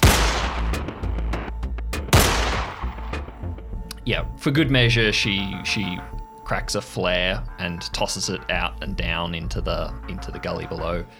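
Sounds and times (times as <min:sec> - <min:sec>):
9mm pistol shots fired into the air: 0:00.0 - 0:01.0, 0:02.1 - 0:03.3
speech: 0:04.0 - 0:11.1.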